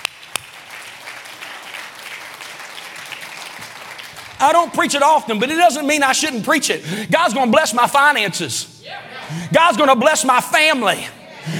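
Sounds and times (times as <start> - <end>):
audience clapping hands: 0.0 - 5.0
speech: 4.4 - 11.5.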